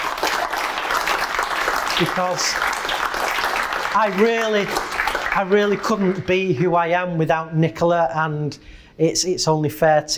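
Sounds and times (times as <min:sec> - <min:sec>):
audience applause: 0:00.0 - 0:06.7
speech: 0:02.0 - 0:02.7, 0:03.9 - 0:10.1.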